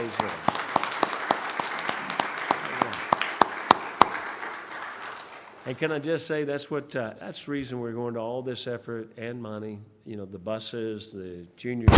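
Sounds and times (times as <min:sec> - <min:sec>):
audience applauding: 0:00.0 - 0:06.0
speech: 0:05.7 - 0:11.9.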